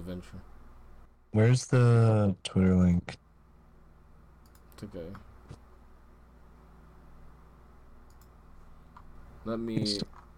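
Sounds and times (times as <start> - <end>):
low steady hiss: 0.0 - 10.3
speech: 0.1 - 0.6, 1.3 - 3.2, 4.8 - 5.6, 9.4 - 10.2
computer mouse clicks: 4.4 - 5.6, 8.0 - 9.1.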